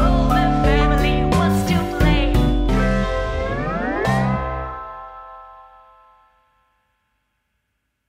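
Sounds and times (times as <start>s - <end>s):
nursery rhyme song: 0.0s - 6.4s.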